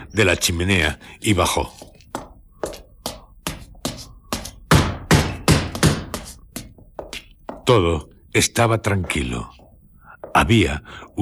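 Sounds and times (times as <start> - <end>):
speech: 0.2 - 1.9, 7.7 - 9.6, 10.3 - 11.1
heavy knocking on a wooden door: 3.4 - 6.3.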